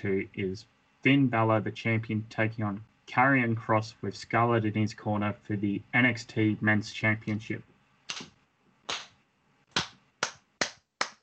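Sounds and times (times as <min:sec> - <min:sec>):
speech: 0:00.0 - 0:08.3
hand clapping: 0:08.1 - 0:11.2.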